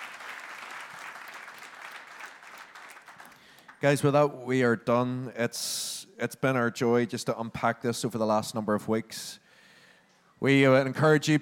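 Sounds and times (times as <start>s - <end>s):
audience applause: 0.0s - 3.8s
speech: 3.8s - 9.4s, 10.4s - 11.4s.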